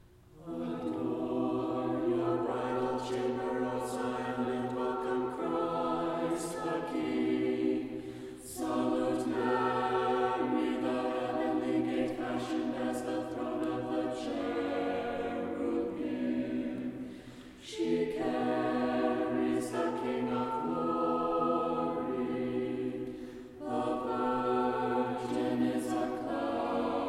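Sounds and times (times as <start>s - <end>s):
SATB choir chanting: 0.4s - 27.0s.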